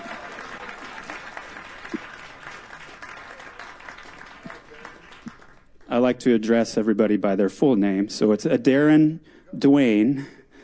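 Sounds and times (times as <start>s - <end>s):
audience clapping: 0.0s - 5.8s
speech: 5.9s - 10.4s.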